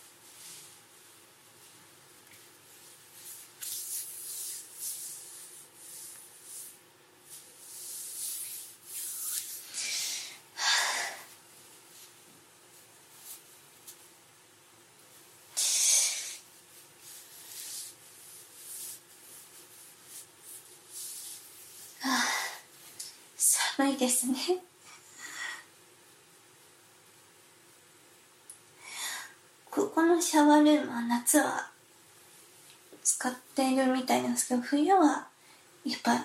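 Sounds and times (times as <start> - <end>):
clothes rustling while undressing: 0.0 - 10.3, 10.9 - 14.2, 14.9 - 23.4
speech: 23.8 - 24.7, 30.2 - 31.7, 33.2 - 36.2.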